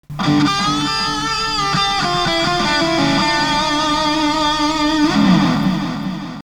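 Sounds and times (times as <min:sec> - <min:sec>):
delay effect: 0:00.0 - 0:06.4.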